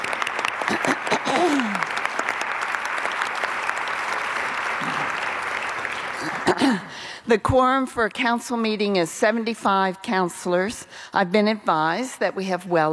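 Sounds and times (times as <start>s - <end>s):
audience applauding: 0.0s - 6.9s
speech: 0.7s - 1.6s, 6.6s - 12.9s.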